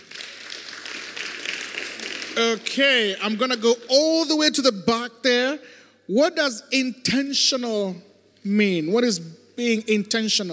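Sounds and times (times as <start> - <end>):
congregation clapping for a woman in church: 0.0 - 3.9
speech: 2.4 - 10.5.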